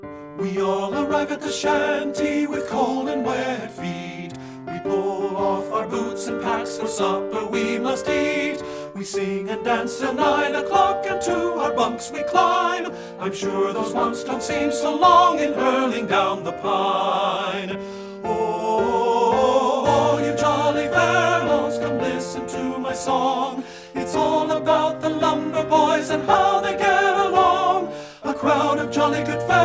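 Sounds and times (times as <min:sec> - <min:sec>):
men's choir tenors singing: 0:00.4 - 0:29.6.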